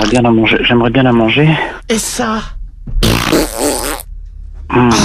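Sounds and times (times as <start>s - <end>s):
speech: 0.1s - 3.6s, 4.7s - 5.0s
fart: 3.0s - 4.1s.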